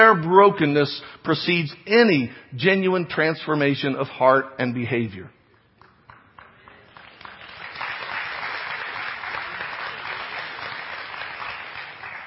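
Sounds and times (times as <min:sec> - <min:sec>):
speech: 0:00.0 - 0:05.4
audience applause: 0:06.4 - 0:12.2.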